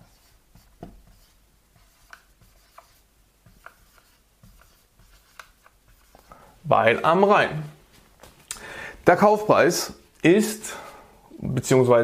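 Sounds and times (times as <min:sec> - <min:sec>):
pen writing a place name down: 0:00.0 - 0:06.3
speech: 0:06.7 - 0:07.8, 0:09.1 - 0:10.8, 0:11.5 - 0:12.0.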